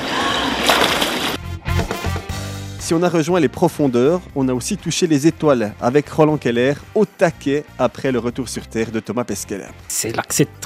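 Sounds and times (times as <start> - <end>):
water sloshing and splashing as someone dives in during a mermaiding session: 0.0 - 2.2
speech: 2.9 - 10.6.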